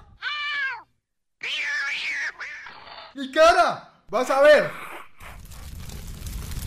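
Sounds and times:
cat meowing as it is grabbed by the neck: 0:00.2 - 0:00.9, 0:01.4 - 0:02.8
speech: 0:03.2 - 0:04.9.

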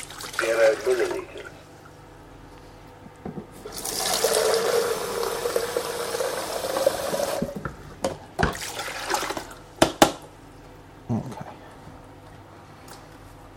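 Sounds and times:
water pouring out of a jug: 0:00.0 - 0:01.6, 0:03.7 - 0:07.6, 0:08.5 - 0:09.6
speech: 0:00.4 - 0:01.4.

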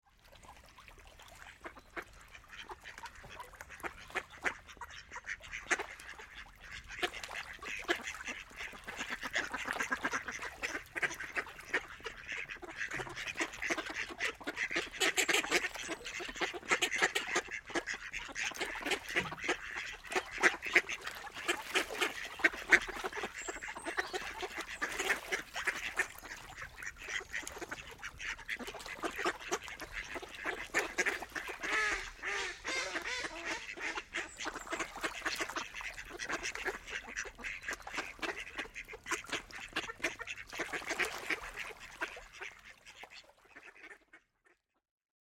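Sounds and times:
ducks quacking: 0:01.2 - 0:44.3.

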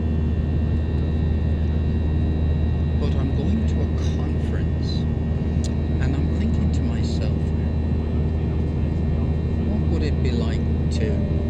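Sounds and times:
airplane cabin noise during a flight: 0:00.0 - 0:11.4.

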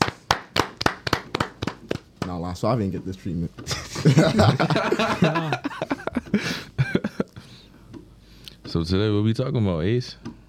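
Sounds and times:
people clapping: 0:00.0 - 0:02.4
speech: 0:02.3 - 0:06.6, 0:08.8 - 0:10.4
laughter: 0:03.7 - 0:07.4.

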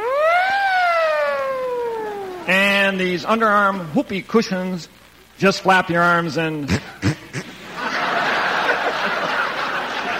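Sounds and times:
electronic siren wail from a toy glow-in-the-dark helmet: 0:00.0 - 0:02.6
speech: 0:02.5 - 0:07.1
laughter: 0:06.7 - 0:10.1.

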